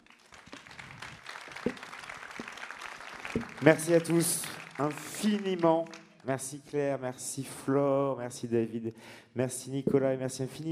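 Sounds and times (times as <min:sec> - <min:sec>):
audience applause: 0:00.0 - 0:06.2
speech: 0:03.4 - 0:10.7.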